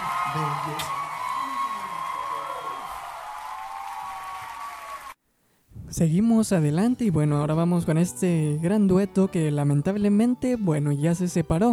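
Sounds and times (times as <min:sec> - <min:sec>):
audience applause: 0:00.0 - 0:05.2
speech: 0:00.3 - 0:01.0, 0:05.9 - 0:11.7.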